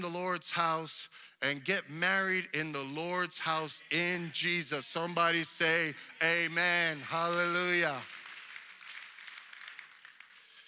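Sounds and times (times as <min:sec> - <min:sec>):
speech: 0:00.0 - 0:08.2
weak applause: 0:05.8 - 0:10.5.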